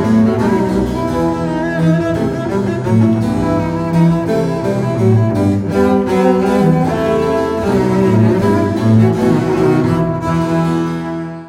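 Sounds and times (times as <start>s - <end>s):
trio sonata: 0.0s - 11.4s.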